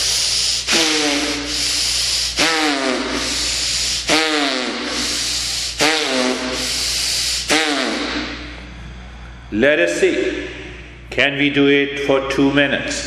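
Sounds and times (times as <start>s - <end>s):
fast noisy belly breathing: 0.0s - 9.5s
speech: 9.5s - 10.5s, 11.2s - 13.0s.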